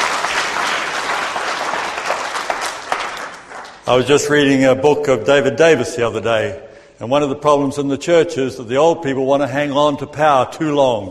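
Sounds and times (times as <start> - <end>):
crowd applauding: 0.0 - 3.9
speech: 3.9 - 11.0.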